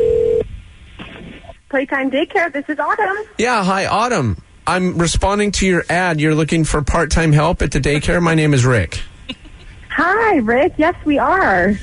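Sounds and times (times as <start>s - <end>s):
telephone keypad tone while dialing a prank call: 0.0s - 0.4s
speech: 1.7s - 9.4s, 10.0s - 11.8s.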